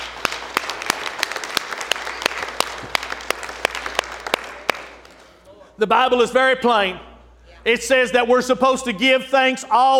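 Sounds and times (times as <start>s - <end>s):
audience hand clapping: 0.0s - 5.4s
speech: 5.8s - 9.9s.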